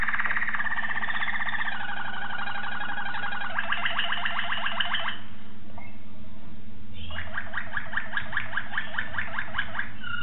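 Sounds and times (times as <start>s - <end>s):
Waterslager canary singing: 0.0s - 6.0s, 6.9s - 10.2s.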